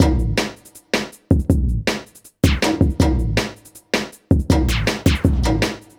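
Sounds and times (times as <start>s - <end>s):
club dance beat: 0.0s - 5.9s.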